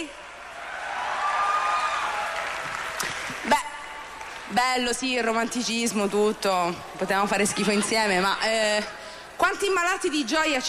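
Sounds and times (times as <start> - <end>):
audience applause: 0.3 - 4.6
speech: 4.6 - 10.6.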